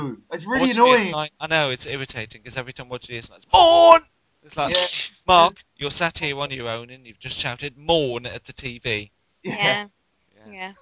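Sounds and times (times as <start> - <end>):
speech: 0.0 - 10.8
loud voiced sneeze: 4.7 - 5.2.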